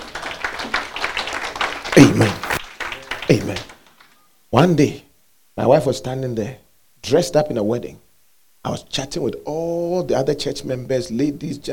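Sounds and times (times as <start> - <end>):
crowd clapping: 0.0 - 4.2
speech: 3.3 - 3.7, 4.5 - 5.0, 5.6 - 8.0, 8.6 - 11.7.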